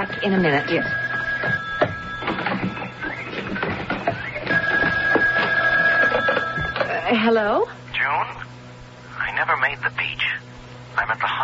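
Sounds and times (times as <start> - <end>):
speech: 0.0 - 1.6, 7.1 - 8.4, 9.4 - 10.4, 11.0 - 11.4
telephone ringing: 0.0 - 7.3.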